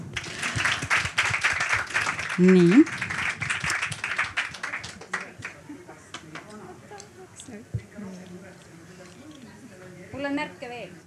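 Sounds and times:
audience applause for a stage guest: 0.0 - 6.5
speech: 2.4 - 3.0.

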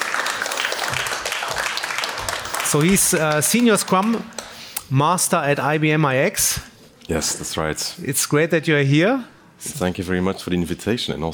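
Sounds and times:
audience applause for a speaker: 0.0 - 4.6
speech: 2.7 - 11.3.

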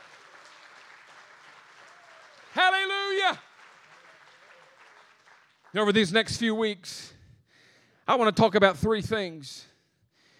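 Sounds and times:
audience clapping hands: 0.0 - 6.5
speech: 2.6 - 3.5, 5.7 - 7.2, 8.1 - 9.7.

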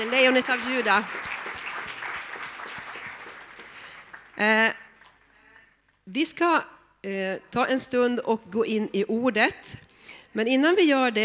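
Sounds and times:
speech: 0.0 - 1.3, 4.4 - 4.8, 6.1 - 11.2
audience applause in a large room: 0.0 - 5.4.

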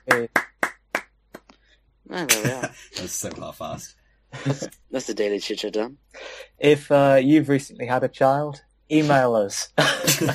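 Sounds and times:
clapping: 0.0 - 1.5
speech: 0.1 - 0.5, 2.1 - 10.3.

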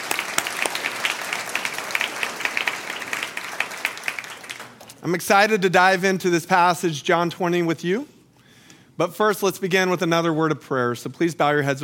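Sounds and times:
audience round of applause: 0.0 - 5.0
speech: 5.0 - 8.1, 9.0 - 11.8.

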